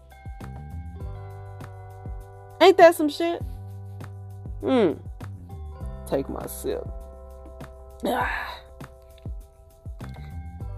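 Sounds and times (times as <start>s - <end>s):
speech: 2.6s - 3.5s, 4.6s - 5.1s, 6.1s - 7.0s, 8.0s - 8.5s
person clearing throat: 4.6s - 5.0s.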